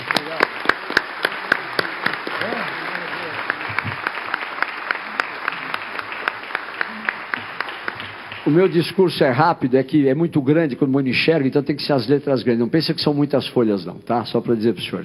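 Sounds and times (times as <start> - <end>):
audience applauding a speaker at a formal gathering: 0.0 - 9.1
speech: 8.5 - 15.0.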